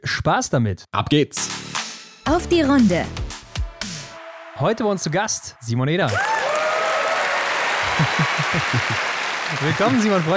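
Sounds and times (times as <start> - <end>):
speech: 0.2 - 1.7, 2.3 - 3.2, 4.6 - 6.3, 8.0 - 10.3
dense crowd applause: 6.1 - 10.3
laughter: 7.7 - 10.3.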